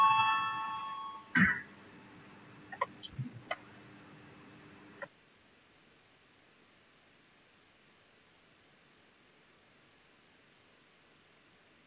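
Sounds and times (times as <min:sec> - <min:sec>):
parliament voting bell ringing: 0:00.0 - 0:01.3
faint clicks and taps: 0:02.7 - 0:03.7.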